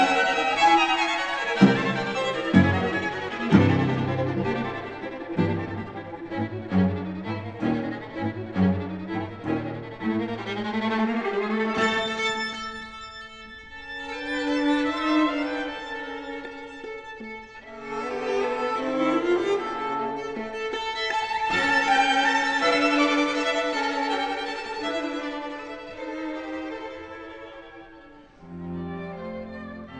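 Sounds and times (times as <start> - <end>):
classical music: 0.0 - 29.9.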